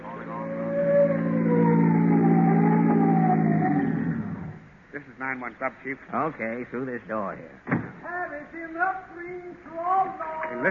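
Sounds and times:
police car siren: 0.1 - 4.6
speech: 5.3 - 10.7.

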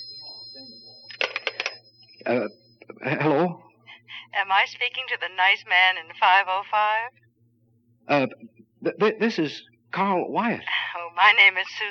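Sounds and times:
faint telephone ring: 0.0 - 3.5
speech: 2.2 - 3.6, 4.4 - 7.2, 8.1 - 11.8.

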